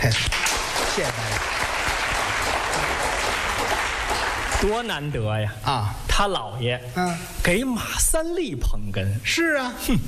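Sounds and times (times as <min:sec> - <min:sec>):
audience applause at a Chinese crosstalk comedy performance: 0:00.0 - 0:05.1
speech: 0:01.0 - 0:01.5, 0:04.6 - 0:10.0.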